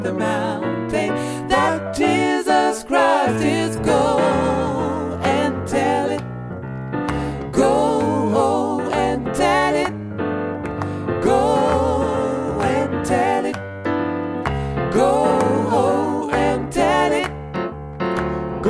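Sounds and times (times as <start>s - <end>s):
gospel tutti ensemble music: 0.0s - 18.6s.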